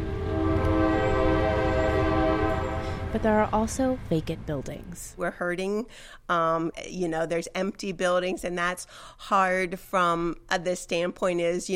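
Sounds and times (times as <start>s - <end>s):
train horn as train passes through town: 0.0s - 3.7s
passing train rumbling: 0.0s - 6.0s
speech: 3.1s - 11.7s.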